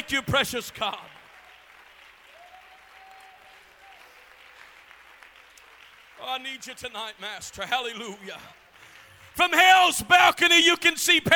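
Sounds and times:
audience hand clapping: 0.0s - 7.2s
speech: 0.1s - 1.2s, 6.2s - 8.6s, 9.4s - 11.3s.

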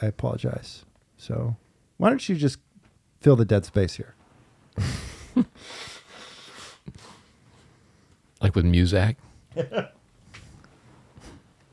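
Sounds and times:
speech: 0.0s - 4.2s, 4.8s - 5.9s, 8.4s - 10.0s
person blowing nose: 4.8s - 7.3s.

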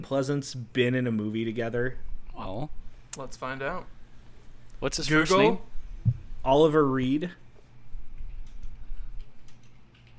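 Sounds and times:
speech: 0.0s - 4.0s, 4.8s - 7.4s
steady low hum: 0.0s - 10.1s
typing on a computer keyboard: 8.2s - 10.1s.

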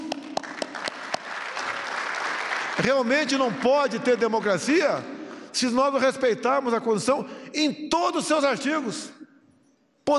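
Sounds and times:
audience applause: 0.0s - 4.8s
speech: 2.8s - 9.2s.

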